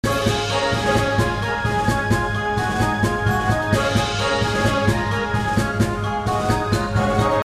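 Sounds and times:
victory background music: 0:00.0 - 0:07.4.

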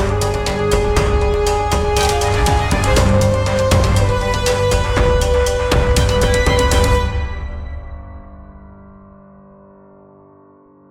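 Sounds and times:
battle music: 0:00.0 - 0:08.4.

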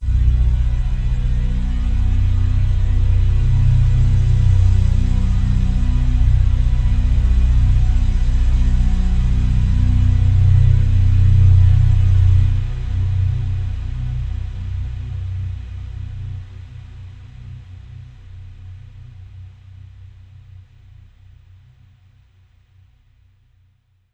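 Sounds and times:
overlay drone: 0:00.0 - 0:16.1.

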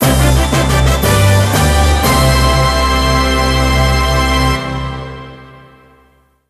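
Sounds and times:
game music general event: 0:00.0 - 0:05.8.

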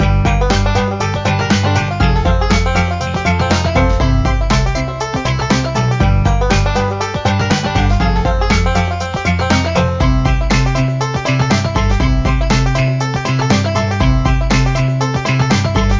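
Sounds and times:
dance music: 0:00.0 - 0:15.9.

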